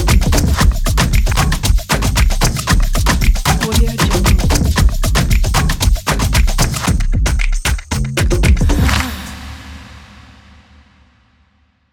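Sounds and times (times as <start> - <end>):
African modern pop percussion: 0.0 - 10.4.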